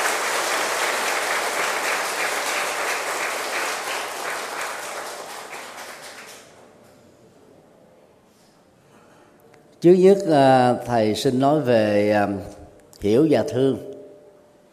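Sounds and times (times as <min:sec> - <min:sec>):
loud audience applause: 0:00.0 - 0:06.6
speech: 0:09.8 - 0:13.9.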